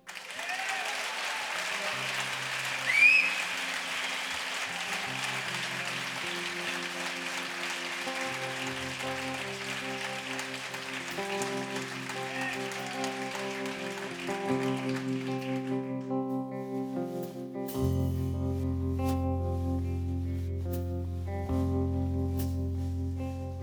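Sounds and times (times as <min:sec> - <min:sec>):
loud applause from a large audience: 0:00.0 - 0:16.7
band music: 0:01.9 - 0:23.6
sharp whistle: 0:02.8 - 0:04.7.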